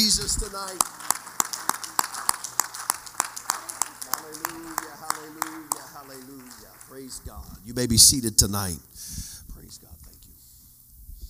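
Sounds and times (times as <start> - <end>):
audience clapping hands: 0.0 - 8.2
speech: 0.2 - 1.0, 7.2 - 8.9.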